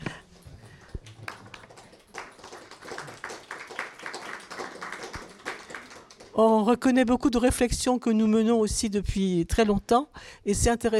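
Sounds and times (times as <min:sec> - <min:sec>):
audience applause: 0:00.2 - 0:06.4
speech: 0:06.4 - 0:10.9.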